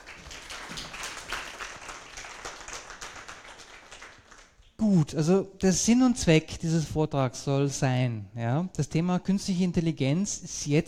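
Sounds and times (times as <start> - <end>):
audience applause: 0.0 - 4.6
speech: 4.8 - 10.8.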